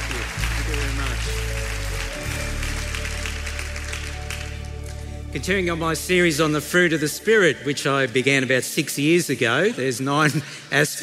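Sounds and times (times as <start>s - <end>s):
church congregation clapping to welcome a speaker at a morning service: 0.0s - 8.3s
sustained low instrumental chords: 0.0s - 9.6s
speech: 5.3s - 11.0s.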